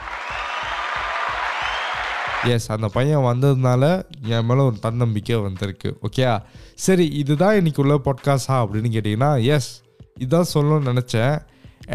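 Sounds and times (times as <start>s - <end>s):
applause: 0.0s - 2.5s
speech: 2.4s - 11.9s.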